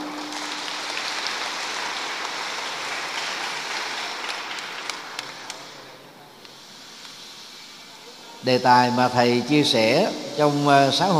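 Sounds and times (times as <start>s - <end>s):
crowd loud round of applause: 0.0s - 6.0s
speech: 8.4s - 11.1s.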